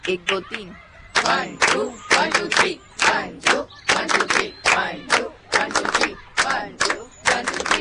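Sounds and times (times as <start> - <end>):
group clapping a rhythmic beat: 0.0 - 7.8.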